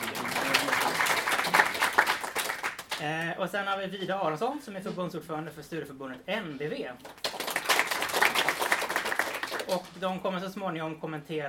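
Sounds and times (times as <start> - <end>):
audience applause: 0.0 - 3.0, 7.2 - 9.8
speech: 3.0 - 7.3, 9.7 - 11.4.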